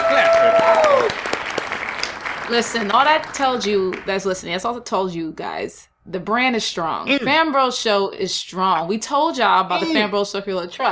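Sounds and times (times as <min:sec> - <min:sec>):
steady clapping from several people: 0:00.0 - 0:04.6
speech: 0:02.5 - 0:10.9.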